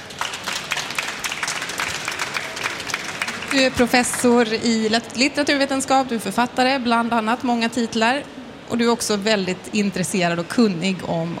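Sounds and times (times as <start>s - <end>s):
audience applause: 0.0s - 4.6s
speech: 3.5s - 11.3s.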